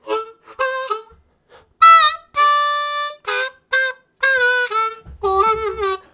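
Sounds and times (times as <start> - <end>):
slow harmonica riffs: 0.0 - 6.1.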